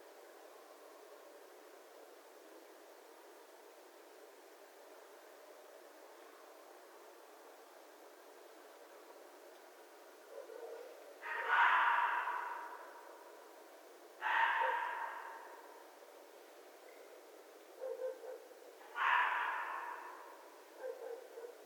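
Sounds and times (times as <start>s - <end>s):
red fox screaming: 11.2s - 13.0s, 14.2s - 15.6s, 18.9s - 20.4s.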